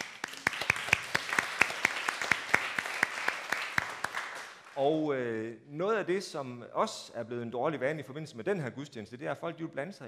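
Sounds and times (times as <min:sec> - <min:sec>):
audience clapping: 0:00.0 - 0:04.9
speech: 0:04.8 - 0:10.0.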